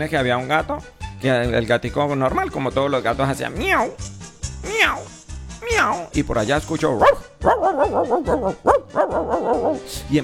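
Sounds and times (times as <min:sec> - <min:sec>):
speech: 0:00.0 - 0:05.2, 0:05.8 - 0:10.2
dog barking: 0:07.0 - 0:09.9.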